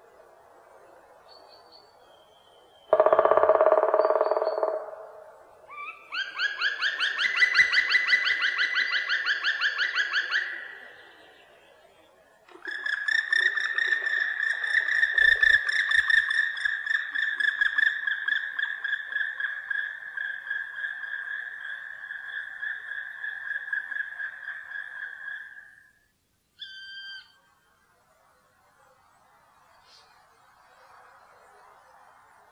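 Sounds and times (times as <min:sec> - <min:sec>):
black woodpecker: 0:02.8 - 0:10.7, 0:12.5 - 0:25.7.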